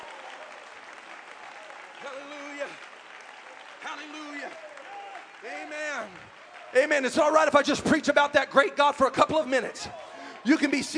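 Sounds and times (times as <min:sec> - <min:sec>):
voice rising over clapping: 0:00.0 - 0:07.2
audience clapping: 0:00.0 - 0:10.9
speech: 0:02.0 - 0:02.8, 0:03.9 - 0:04.7, 0:05.4 - 0:10.9.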